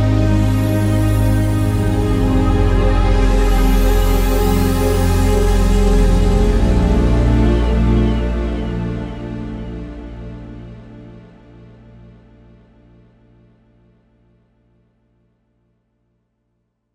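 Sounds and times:
liquid string synthesizer sound from a rack module: 0:00.0 - 0:12.2.

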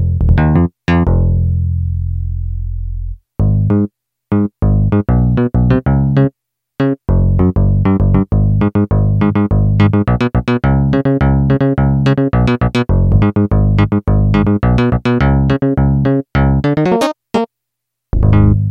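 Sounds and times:
Yamaha DX7 synthesizer bass: 0:00.0 - 0:17.5, 0:18.2 - 0:18.6.

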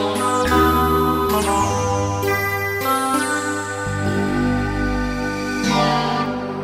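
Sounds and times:
Roland PN-D50 digital piano: 0:00.2 - 0:06.6.

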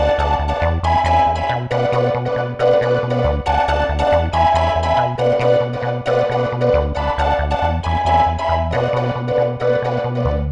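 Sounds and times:
Roland SC-880 synthesizer techno pizzicato patch: 0:00.0 - 0:10.5.

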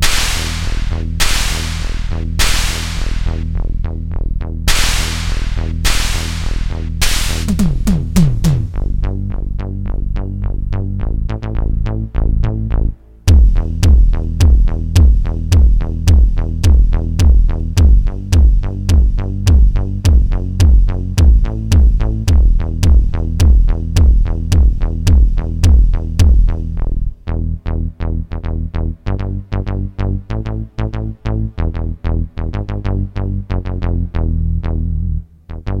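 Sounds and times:
Korg DSS-1 drums: 0:00.0 - 0:03.5, 0:04.7 - 0:09.0, 0:13.3 - 0:26.7
Korg DSS-1 synth bass: 0:00.0 - 0:35.7.

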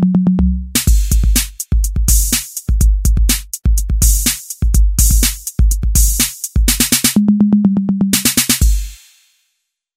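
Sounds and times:
electronic drum kit: 0:00.0 - 0:09.4.

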